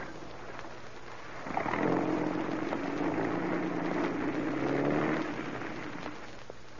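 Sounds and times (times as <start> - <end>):
car engine starting to drive off: 1.4 - 6.3.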